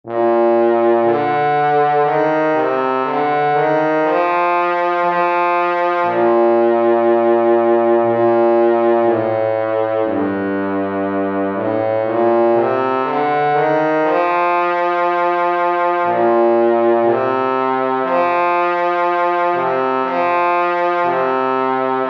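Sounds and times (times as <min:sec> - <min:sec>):
trombone: 0:00.1 - 0:22.0.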